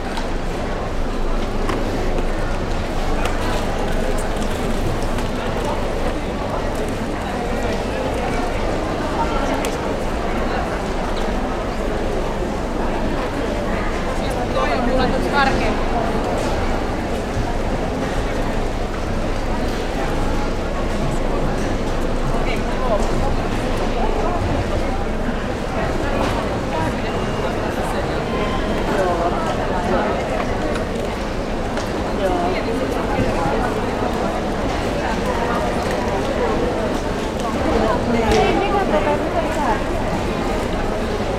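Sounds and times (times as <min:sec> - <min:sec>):
crowd noises: 0:00.0 - 0:41.3.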